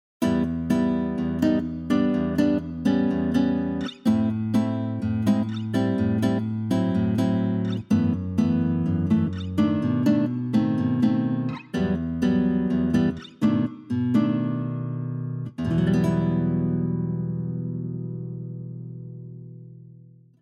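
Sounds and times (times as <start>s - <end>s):
guitar: 0.2s - 20.4s.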